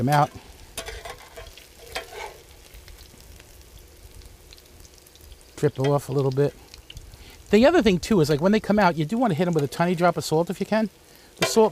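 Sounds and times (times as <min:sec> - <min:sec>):
speech: 0:00.0 - 0:00.5, 0:05.6 - 0:06.6, 0:07.5 - 0:11.7
food frying in olive oil: 0:00.0 - 0:11.7
scraping stir: 0:00.8 - 0:02.5.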